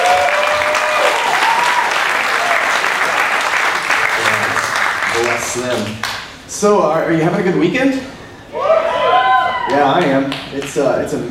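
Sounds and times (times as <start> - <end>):
audience cheering: 0.0 - 6.0, 8.5 - 10.7
applause: 0.0 - 6.3, 9.7 - 10.8
speech: 5.5 - 8.1, 9.7 - 11.2.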